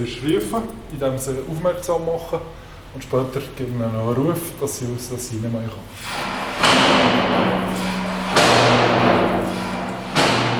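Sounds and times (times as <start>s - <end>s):
speech: 0.0s - 7.6s
sliding gate flap pulled open and shut to call lions: 6.0s - 10.5s.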